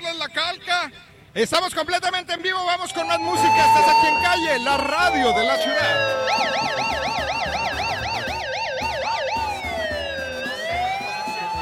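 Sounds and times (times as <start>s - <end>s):
speech: 0.8s - 7.3s
alarm siren sounding: 2.8s - 11.5s.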